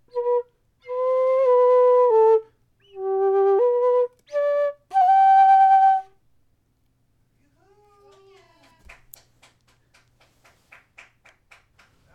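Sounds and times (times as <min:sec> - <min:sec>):
flute: 0:00.0 - 0:06.2.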